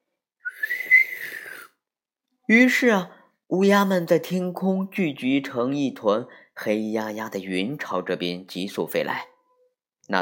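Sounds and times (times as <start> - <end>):
sharp finger whistle: 0.4 - 1.8
speech: 2.5 - 9.3.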